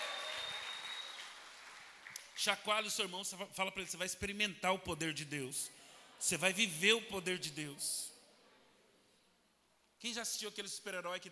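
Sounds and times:
audience applause: 0.0s - 2.4s
speech: 2.4s - 8.1s, 10.0s - 11.2s.

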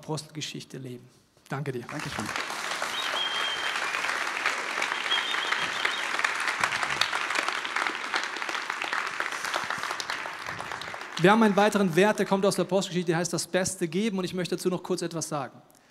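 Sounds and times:
speech: 0.0s - 2.7s, 11.2s - 15.7s
audience applause: 1.9s - 12.2s.

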